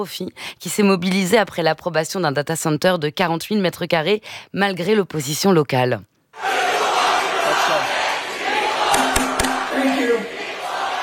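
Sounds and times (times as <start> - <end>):
speech: 0.0 - 6.5
protest crowd chanting slogan in New Jersey: 6.4 - 11.0.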